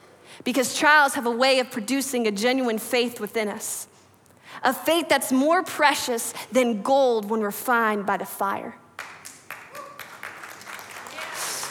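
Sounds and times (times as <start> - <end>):
speech: 0.4 - 3.9, 4.6 - 8.8
audience clapping: 9.0 - 11.7.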